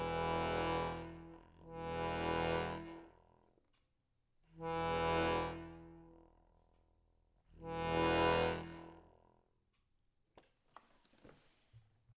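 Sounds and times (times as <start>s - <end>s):
Hohner Morino VM accordion bass reed tongue noises: 0.0s - 3.2s, 4.6s - 6.2s, 7.6s - 9.0s.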